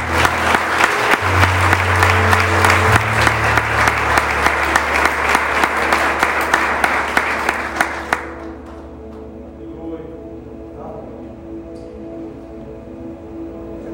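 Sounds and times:
audience applauding: 0.0 - 9.3.

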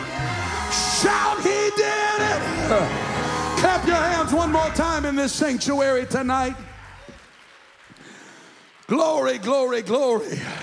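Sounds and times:
audience shouting: 0.0 - 7.3
speech: 1.0 - 1.6, 2.7 - 6.7, 8.9 - 10.6.

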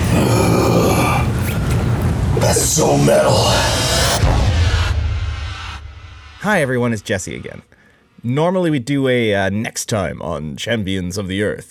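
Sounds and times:
monstrous dragon roar: 0.0 - 4.4
speech: 2.8 - 3.8, 6.4 - 11.6.

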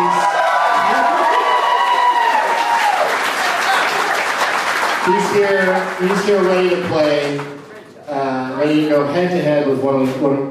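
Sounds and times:
audience applause and cheering: 0.0 - 7.8
speech: 5.1 - 10.4.

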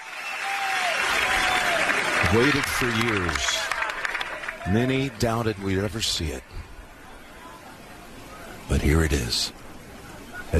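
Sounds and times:
golf gallery applause and cheering after a putt: 0.0 - 5.9
speech: 2.2 - 3.7, 4.6 - 6.7, 8.7 - 9.6.

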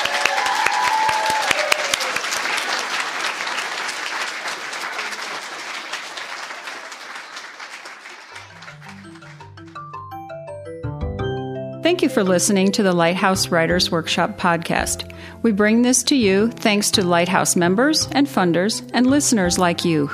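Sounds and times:
audience applause: 0.0 - 10.1
simple melodic tune: 8.4 - 20.1
speech: 12.0 - 20.1.

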